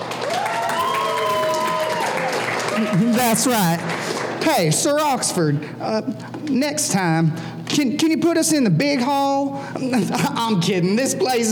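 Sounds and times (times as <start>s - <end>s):
audience applause: 0.0s - 5.4s
speech: 2.8s - 11.4s
laughter: 9.8s - 10.7s.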